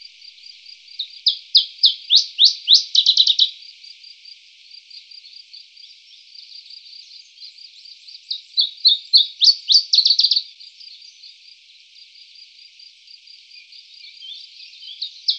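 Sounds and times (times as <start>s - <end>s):
common chiffchaff Phylloscopus collybita song of high hooked notes: 0.9s - 3.6s, 5.8s - 11.4s, 13.6s - 15.3s.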